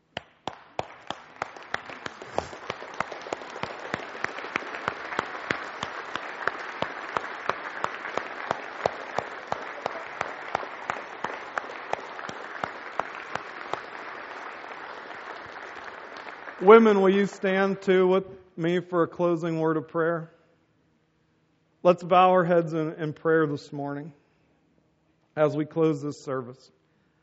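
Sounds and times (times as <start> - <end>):
audience applause: 0.4 - 17.1
speech: 16.6 - 20.4, 21.8 - 24.2, 25.4 - 26.8.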